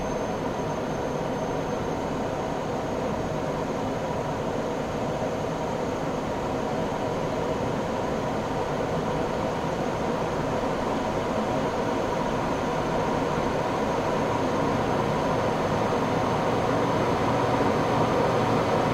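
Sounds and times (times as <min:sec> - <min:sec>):
Gloster Meteor F Mk8 fighter jet flying, interior: 0:00.0 - 0:18.9.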